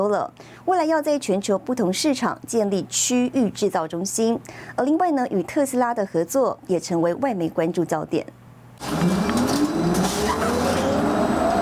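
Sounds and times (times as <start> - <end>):
speech: 0.0 - 9.3
Foxconn electric car motor whine while accelerating: 8.8 - 11.6
rushing road and tyre noise of a Foxconn electric car: 8.8 - 11.6.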